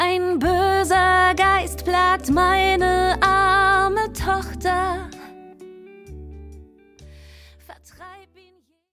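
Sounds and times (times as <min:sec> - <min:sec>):
soprano and solo singing: 0:00.0 - 0:05.5, 0:07.6 - 0:08.9.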